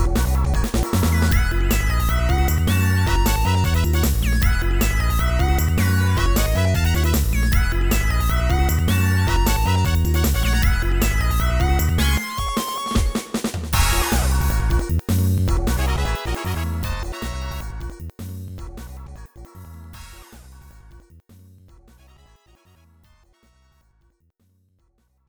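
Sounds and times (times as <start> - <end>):
stage background music: 0.1 - 18.1.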